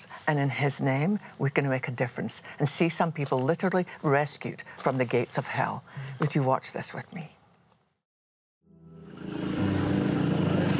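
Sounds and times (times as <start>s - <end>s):
speech: 0.0s - 7.4s
tuk-tuk engine droning during a ride through a red light district: 9.0s - 10.7s.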